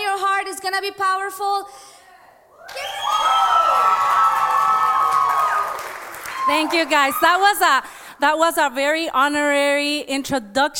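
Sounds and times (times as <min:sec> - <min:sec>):
speech: 0:00.6 - 0:01.9, 0:06.5 - 0:10.7
crowd cheering and high-pitched whooping: 0:02.5 - 0:07.5.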